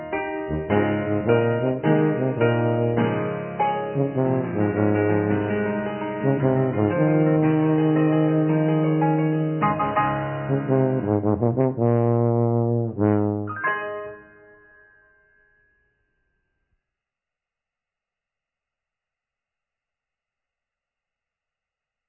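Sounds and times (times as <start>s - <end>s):
brass playing wassail song: 0.5s - 13.8s.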